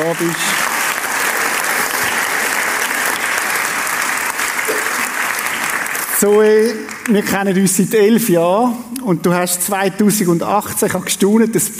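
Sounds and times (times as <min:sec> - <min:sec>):
speech: 0:00.0 - 0:00.6, 0:06.2 - 0:11.7
audience applause: 0:00.0 - 0:07.6.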